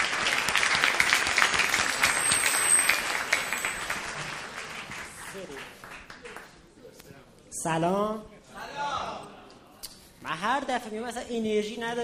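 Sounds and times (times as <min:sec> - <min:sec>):
audience applause: 0:00.0 - 0:06.6
speech: 0:07.6 - 0:08.3, 0:10.3 - 0:12.0.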